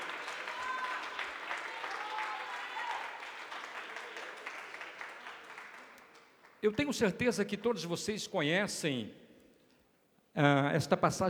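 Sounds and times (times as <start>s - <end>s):
audience applause: 0.0s - 6.9s
speech: 6.6s - 9.2s, 10.4s - 11.2s.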